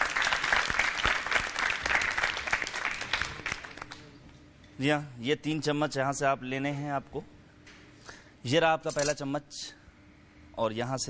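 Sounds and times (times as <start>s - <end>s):
crowd applauding: 0.0s - 4.0s
speech: 4.8s - 7.3s, 8.4s - 9.8s, 10.6s - 11.0s.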